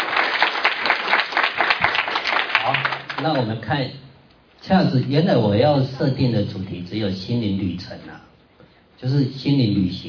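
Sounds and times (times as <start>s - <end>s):
audience applause welcoming a speaker: 0.0s - 3.4s
speech: 3.2s - 4.0s, 4.6s - 8.3s, 9.0s - 10.0s.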